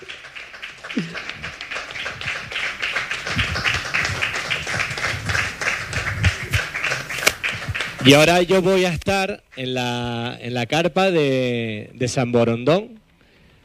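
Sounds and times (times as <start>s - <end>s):
audience applause: 0.0s - 8.7s
speech: 8.0s - 13.0s.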